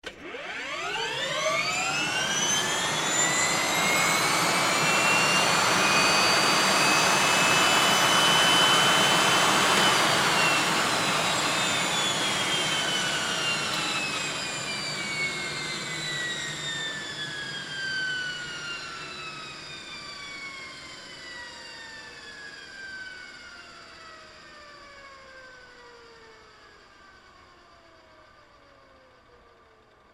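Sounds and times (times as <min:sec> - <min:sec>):
HH-65 Dolphin helicopter engine starting up and shutting off: 0:00.3 - 0:29.8.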